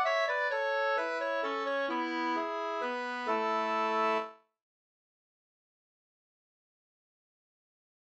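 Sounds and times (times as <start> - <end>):
langdans folk dance music: 0.0 - 4.3.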